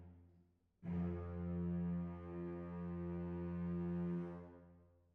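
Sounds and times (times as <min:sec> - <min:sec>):
double basses: 0:00.8 - 0:04.6.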